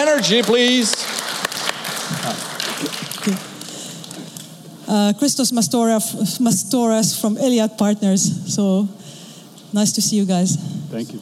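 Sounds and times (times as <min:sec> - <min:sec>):
audience applause: 0:00.0 - 0:04.3
speech: 0:00.2 - 0:01.2, 0:02.1 - 0:03.5, 0:04.9 - 0:09.0, 0:09.7 - 0:11.1.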